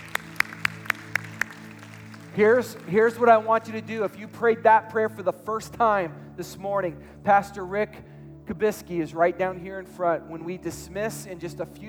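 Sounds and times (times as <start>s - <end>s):
audience hand clapping: 0.0s - 4.4s
speech: 2.4s - 11.8s.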